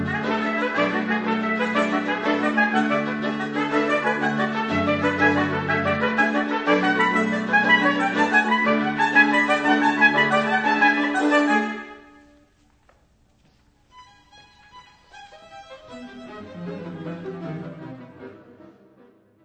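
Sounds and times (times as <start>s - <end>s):
trumpets: 0.0s - 12.5s
strings: 0.0s - 12.6s, 13.8s - 19.4s.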